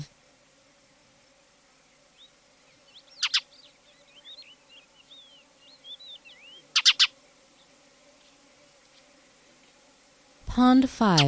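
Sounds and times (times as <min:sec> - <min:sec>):
Spanish sparrow chirps: 0:02.2 - 0:07.7
speech: 0:10.6 - 0:11.2.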